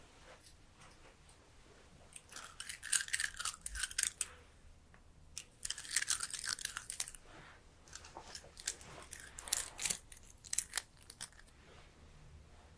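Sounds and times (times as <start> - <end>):
hair being cut: 2.2 - 4.3, 5.4 - 7.2, 7.9 - 11.5.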